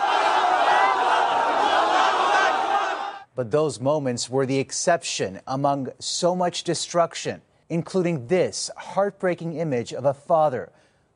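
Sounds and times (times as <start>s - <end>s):
crowd of hundreds cheering in joy: 0.0s - 3.3s
speech: 3.4s - 10.8s.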